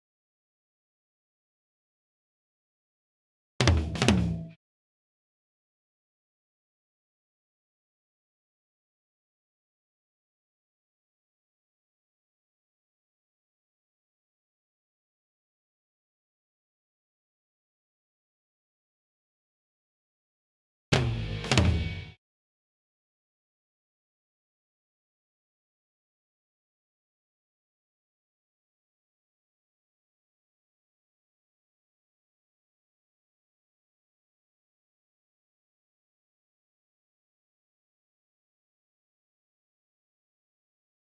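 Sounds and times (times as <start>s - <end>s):
drums: 3.6s - 4.6s, 20.9s - 22.2s.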